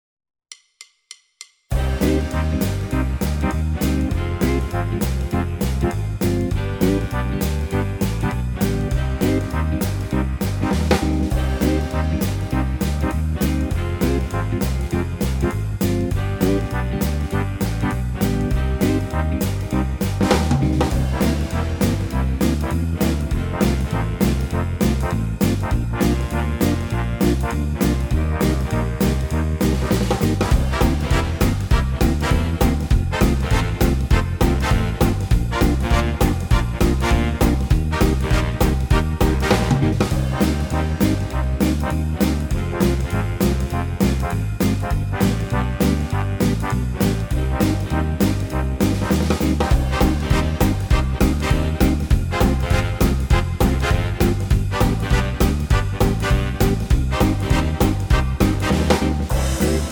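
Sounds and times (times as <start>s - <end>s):
big band swing music: 1.7s - 59.9s.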